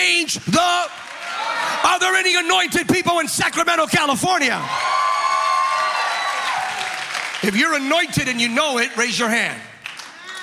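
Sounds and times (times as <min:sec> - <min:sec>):
audience clapping: 0:00.0 - 0:02.5, 0:04.8 - 0:10.4
speech: 0:00.2 - 0:01.1, 0:01.9 - 0:05.1, 0:07.4 - 0:09.7.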